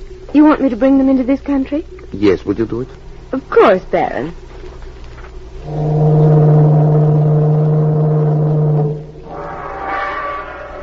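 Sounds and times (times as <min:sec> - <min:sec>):
speech: 0:00.3 - 0:04.4, 0:05.6 - 0:06.0
higher wavering tone: 0:05.6 - 0:10.8
ship's departure whistle: 0:05.6 - 0:10.8.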